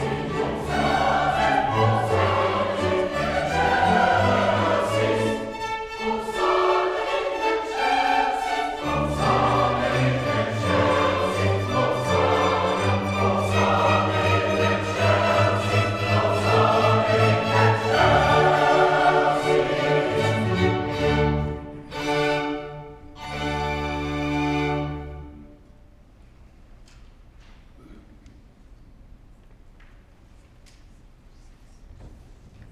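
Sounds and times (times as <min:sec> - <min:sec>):
chancel choir singing a mass in G major: 0:00.0 - 0:25.5.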